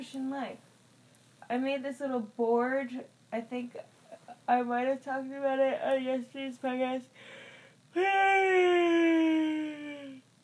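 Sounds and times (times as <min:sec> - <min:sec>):
speech: 0:00.0 - 0:00.7, 0:01.5 - 0:09.6
person yawning: 0:08.0 - 0:10.2.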